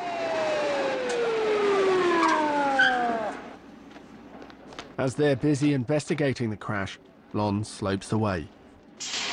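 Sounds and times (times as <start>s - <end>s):
police car sirens wailing as cars speed down a hill: 0.0s - 3.6s
speech: 5.0s - 9.2s.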